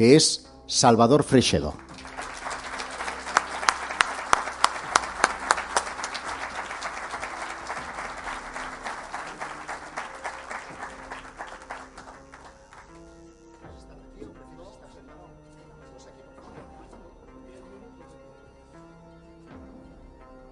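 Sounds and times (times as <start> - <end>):
speech: 0.0 - 1.9
audience applause welcoming a lecturer on UFO studies: 1.8 - 13.0.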